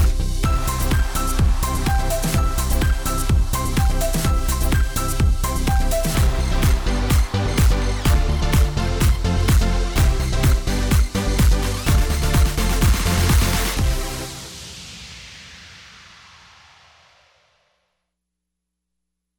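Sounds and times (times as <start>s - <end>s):
Christmas square dance music: 0.0s - 14.5s.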